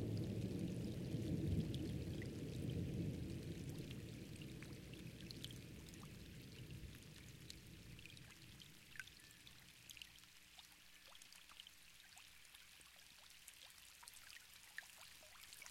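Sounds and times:
thunderstorm: 0.0 - 8.1.

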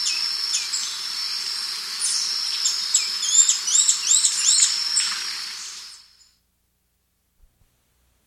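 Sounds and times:
Black-and-white Becard song: 0.0 - 6.4.

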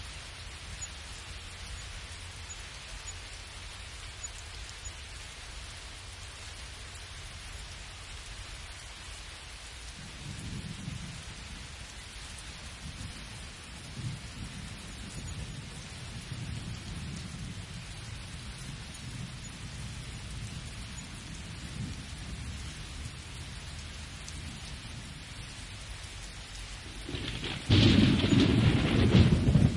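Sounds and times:
thunderstorm in a field: 10.0 - 25.7, 26.8 - 29.7.

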